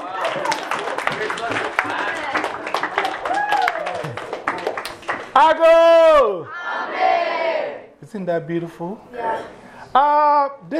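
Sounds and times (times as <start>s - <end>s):
audience clapping: 0.0s - 5.6s
speech: 1.2s - 2.3s, 5.4s - 6.6s, 8.1s - 10.7s.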